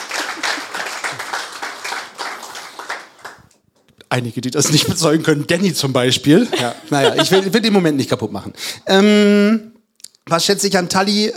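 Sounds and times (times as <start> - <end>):
applause: 0.0 - 3.6
speech: 4.1 - 9.7, 10.3 - 11.3
laughter: 4.6 - 5.2, 6.4 - 8.0.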